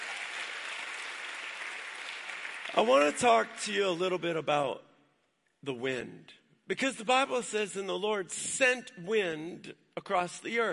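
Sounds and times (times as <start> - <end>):
audience applauding: 0.0 - 3.7
speech: 2.7 - 4.9, 5.6 - 10.7.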